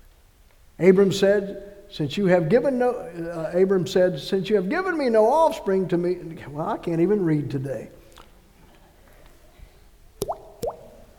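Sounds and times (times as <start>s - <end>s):
faint hiss: 0.0s - 11.1s
speech: 0.8s - 8.0s
water being drained off, watery plops with gurgle: 10.2s - 11.1s.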